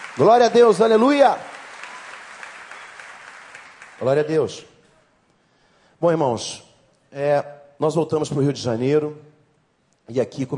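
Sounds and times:
audience applause: 0.0 - 4.4
speech: 0.2 - 1.5, 4.0 - 4.7, 6.0 - 9.3, 10.1 - 10.5.

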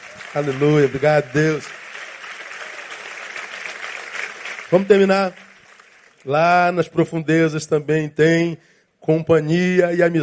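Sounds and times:
audience applause: 0.0 - 6.2
speech: 0.4 - 1.8, 4.7 - 5.4, 6.2 - 10.2.

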